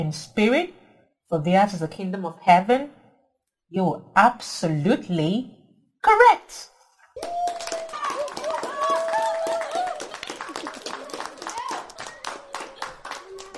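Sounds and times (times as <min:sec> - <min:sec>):
speech: 0:00.0 - 0:03.0, 0:03.7 - 0:07.4
hands clapping: 0:07.2 - 0:13.5.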